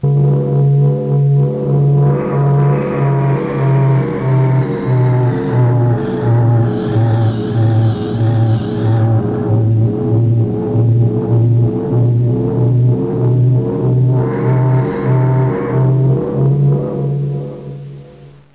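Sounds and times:
hum: 0.0s - 18.5s.

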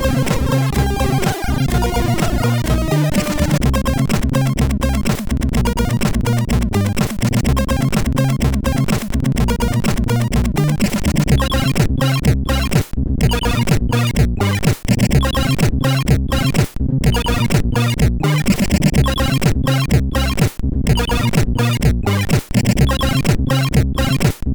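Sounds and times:
drums: 0.0s - 24.5s.

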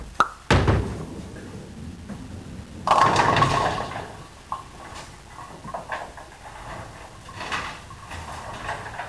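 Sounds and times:
bowling strike: 0.0s - 4.7s.

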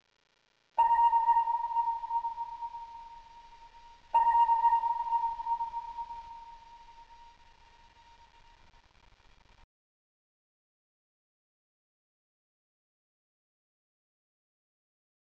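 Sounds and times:
ping: 0.8s - 7.2s.

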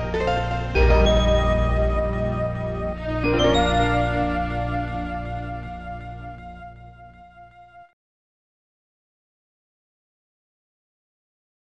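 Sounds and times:
soft arpeggio: 0.0s - 6.2s.

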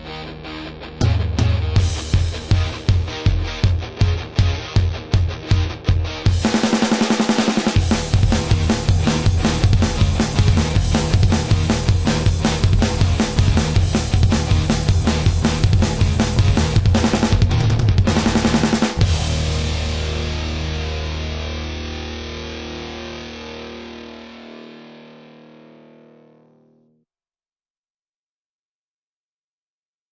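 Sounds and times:
drums: 1.0s - 21.6s.

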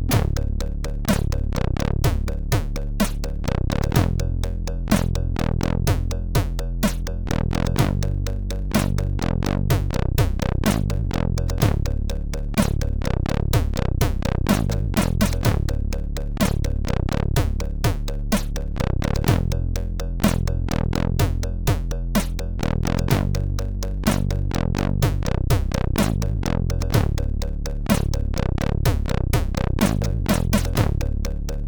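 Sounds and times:
music beat: 0.1s - 31.6s.

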